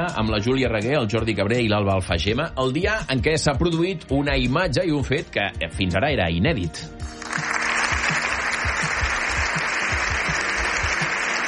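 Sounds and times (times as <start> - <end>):
speech: 0.1 - 7.2
applause in parliament chamber: 7.1 - 11.4.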